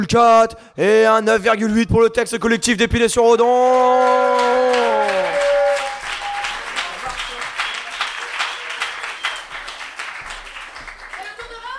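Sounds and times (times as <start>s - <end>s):
speech: 0.0s - 4.6s
audience applause: 3.8s - 11.7s.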